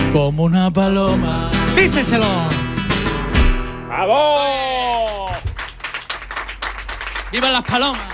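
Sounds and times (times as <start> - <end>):
speech: 0.1 - 2.6, 3.9 - 5.1, 7.3 - 8.1
applause after a song: 5.0 - 8.1.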